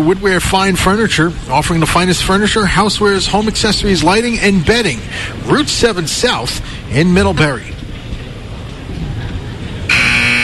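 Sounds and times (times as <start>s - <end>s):
speech: 0.0s - 7.7s
crowd murmur: 6.6s - 10.4s
arena buzzer ending a timeout at a college ice hockey game: 9.9s - 10.4s.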